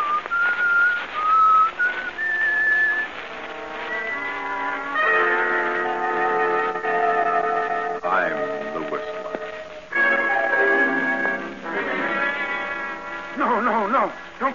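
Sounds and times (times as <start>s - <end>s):
whistled radio show theme melody: 0.0s - 9.2s
sustained instrumental chords: 3.1s - 14.4s.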